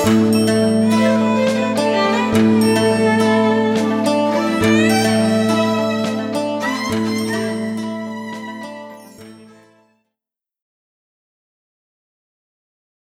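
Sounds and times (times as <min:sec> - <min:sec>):
dark harp music: 0:00.0 - 0:09.8.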